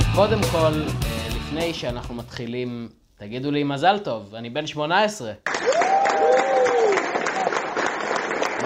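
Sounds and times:
speech: 0.1s - 6.4s
audience applause: 5.5s - 8.6s.

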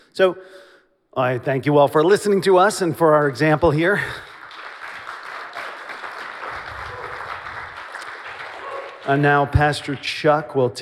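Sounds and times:
speech: 0.2s - 4.3s, 9.1s - 10.8s
audience applause: 3.9s - 10.1s.

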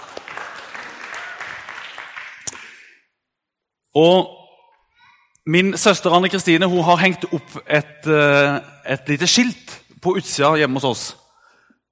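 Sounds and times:
crowd applause: 0.0s - 2.9s
speech: 4.0s - 4.4s, 5.5s - 11.2s.

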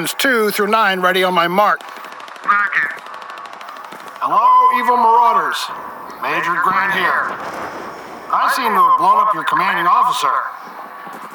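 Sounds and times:
speech: 0.0s - 2.6s, 4.3s - 10.7s
machine-gun fire: 1.5s - 9.3s.

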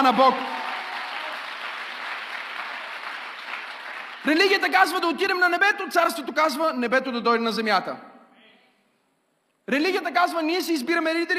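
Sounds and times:
speech: 0.0s - 0.6s, 4.2s - 8.1s, 9.7s - 11.3s
audience applauding: 0.0s - 4.7s.

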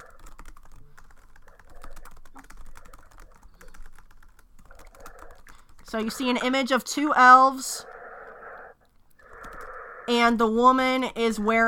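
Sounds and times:
typing on a computer keyboard: 0.0s - 6.0s, 9.2s - 9.8s
speech: 5.9s - 7.9s, 10.1s - 11.6s.

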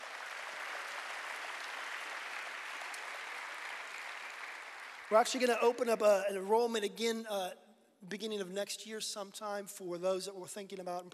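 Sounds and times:
audience hand clapping: 0.0s - 6.0s
speech: 5.1s - 11.1s.

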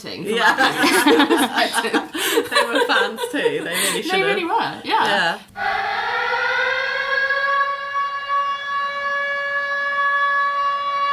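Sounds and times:
speech: 0.0s - 6.4s
laughter: 0.3s - 4.7s
alarm siren sound effect: 5.6s - 11.1s.

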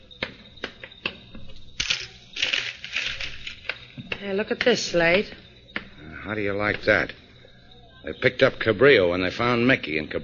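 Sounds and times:
rough rustling and scraping of handling: 1.4s - 4.1s
nickel coin clicking as handed over: 1.8s - 3.8s
speech: 4.2s - 5.4s, 6.3s - 7.2s, 8.0s - 10.2s.

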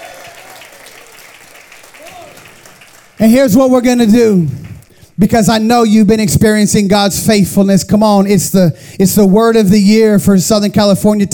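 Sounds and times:
church congregation clapping during a morning service: 0.0s - 5.2s
speech: 3.2s - 4.6s, 5.2s - 11.3s.

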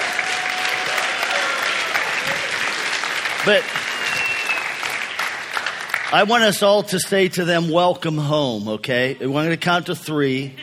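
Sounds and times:
audience applause: 0.0s - 6.6s
speech: 3.4s - 3.8s, 6.1s - 10.6s.

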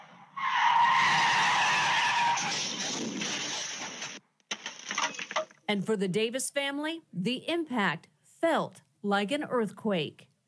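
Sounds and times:
car tires screeching as it skids sideways after clipping two parked cars: 0.0s - 4.2s
speech: 5.7s - 10.3s.

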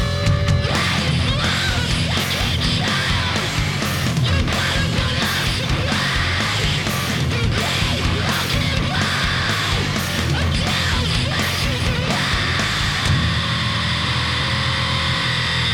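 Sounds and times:
song with sung vocals: 0.1s - 15.7s.

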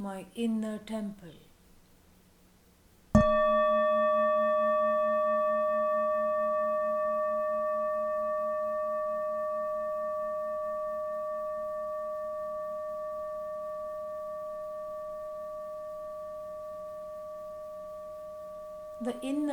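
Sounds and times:
speech: 0.0s - 1.4s
meditation bell ringing: 3.2s - 19.5s.

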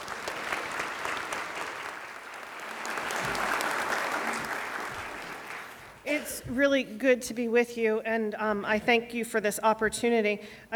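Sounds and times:
audience applause at a Christian gathering: 0.0s - 6.0s
speech: 6.2s - 10.7s.

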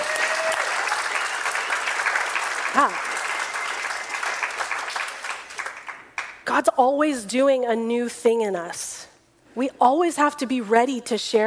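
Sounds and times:
audience applause: 0.0s - 6.4s
speech: 2.8s - 3.1s, 6.6s - 11.4s.

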